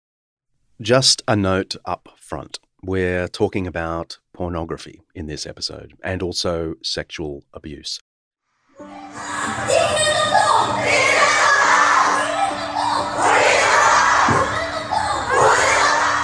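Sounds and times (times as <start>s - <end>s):
speech: 0.8s - 8.1s
large crowd of Korean women shouting in protest against spy-cam pornography: 8.8s - 16.2s.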